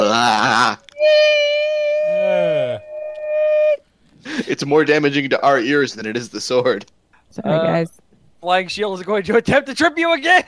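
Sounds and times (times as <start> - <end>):
short warbling voice-like wail: 0.0 - 3.8
speech: 4.6 - 10.4.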